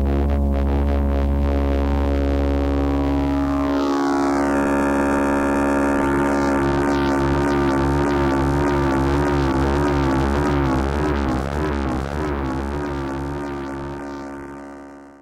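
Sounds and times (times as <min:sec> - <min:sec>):
tone with fake vibrato: 0:00.1 - 0:15.1.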